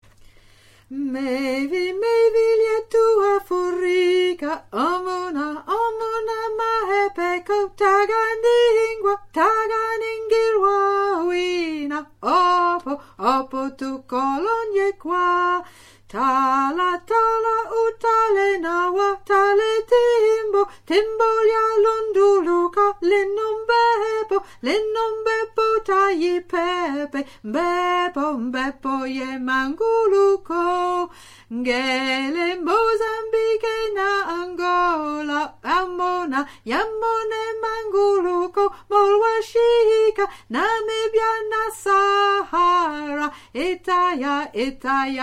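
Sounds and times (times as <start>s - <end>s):
soprano singing: 0.9s - 45.2s.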